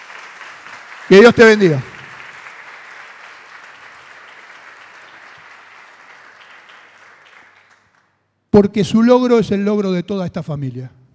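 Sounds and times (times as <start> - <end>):
audience applause: 0.0 - 8.1
speech: 1.1 - 1.9, 8.6 - 11.0.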